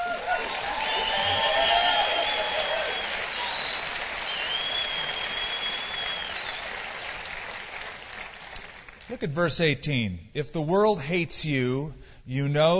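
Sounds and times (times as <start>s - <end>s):
audience applause at a live Saturday-night Bible study broadcast: 0.0s - 9.1s
speech: 9.2s - 12.7s.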